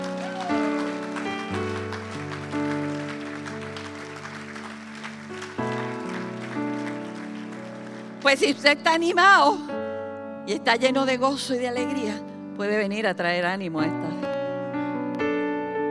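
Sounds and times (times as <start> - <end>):
audience applause: 0.0 - 9.2
sustained keyboard or organ chords: 0.0 - 15.8
speech: 8.3 - 9.7, 10.5 - 14.2.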